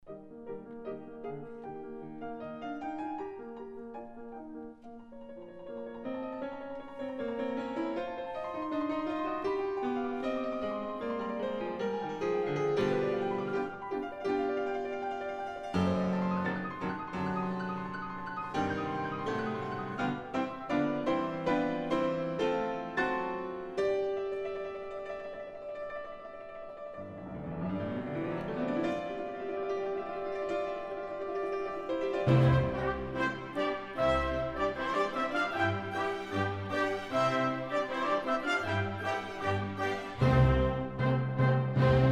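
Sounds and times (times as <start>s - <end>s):
piano concerto allegro con brio: 0.0s - 42.1s.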